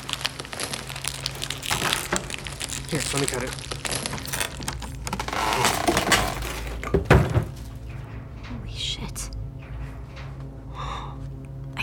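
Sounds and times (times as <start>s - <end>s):
plastic wrapping crinkling as it is pulled off a big box: 0.0s - 6.9s
faint low hum: 0.0s - 11.8s
speech: 2.9s - 3.8s.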